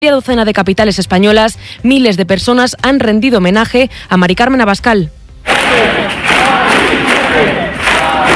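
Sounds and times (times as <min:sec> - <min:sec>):
speech: 0:00.0 - 0:06.1
protest march crowd chanting in Madrid: 0:05.5 - 0:08.3.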